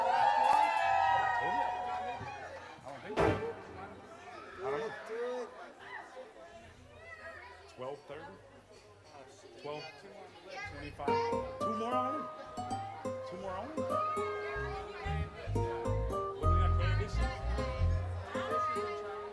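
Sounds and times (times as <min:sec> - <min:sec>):
women in the audience at a late-night live show cheering: 0:00.0 - 0:02.6
crowd chatter and shouts: 0:00.0 - 0:19.3.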